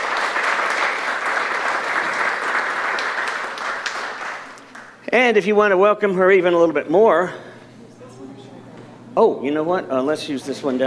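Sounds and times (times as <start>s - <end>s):
crowd applause: 0.0s - 5.0s
speech: 5.1s - 7.5s, 9.2s - 10.8s.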